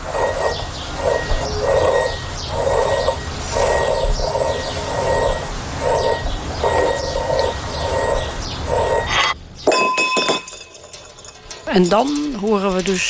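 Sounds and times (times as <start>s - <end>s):
steady rhythmic rumble: 0.0s - 9.2s, 10.7s - 13.0s
thin high whine: 0.0s - 9.4s
glass jars rattling: 0.0s - 13.0s
glass crashing and clinking: 9.6s - 13.0s
speech: 11.8s - 13.0s.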